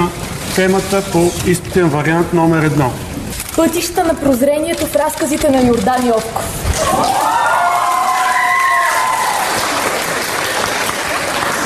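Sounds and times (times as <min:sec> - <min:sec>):
speech: 0:00.6 - 0:03.0, 0:03.6 - 0:07.4
stormy applause from a large crowd of students: 0:06.7 - 0:11.6
cheers and whistles: 0:06.9 - 0:09.7.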